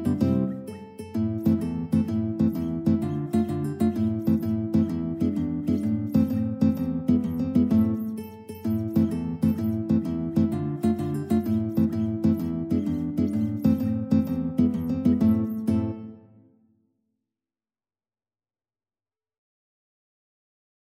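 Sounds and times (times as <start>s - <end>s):
tarantella guitar duet: 0.0s - 16.5s.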